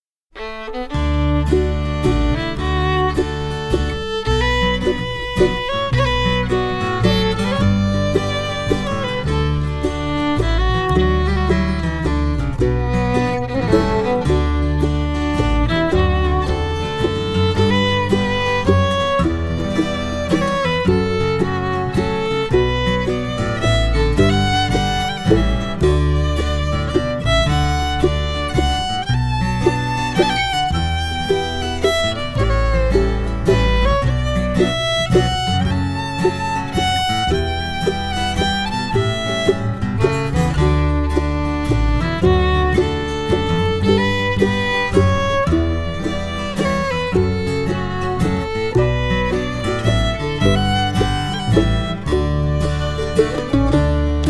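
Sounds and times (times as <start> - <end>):
resonator guitar waltz: 0.4 - 54.2.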